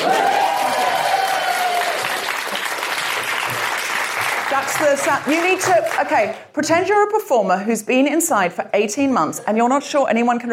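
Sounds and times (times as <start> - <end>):
cheers and whoops: 0.0 - 2.5
audience applause: 0.0 - 6.4
speech: 4.6 - 10.5.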